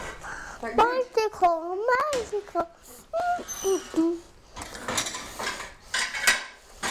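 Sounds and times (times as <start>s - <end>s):
speech: 0.6s - 4.3s
child's high sing-song voice: 0.8s - 4.3s
dishes and cutlery clattering: 4.6s - 6.8s.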